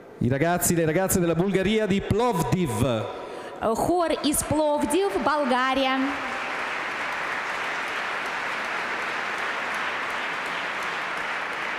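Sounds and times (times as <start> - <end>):
speech: 0.2 - 6.3
audience applause welcoming a choir: 5.0 - 11.7.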